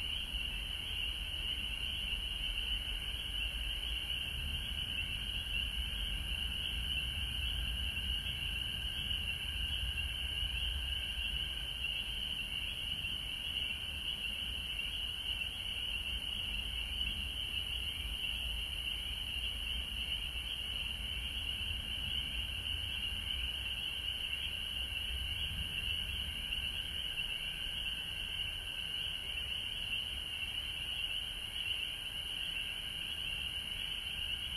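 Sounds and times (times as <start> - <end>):
frogs in Georgia: 0.0 - 34.5.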